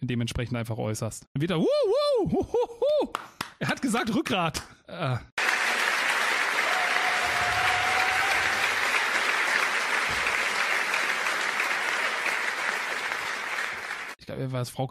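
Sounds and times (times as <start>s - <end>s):
speech: 0.1s - 5.4s, 14.3s - 14.8s
audience applause in a hall: 5.4s - 14.2s.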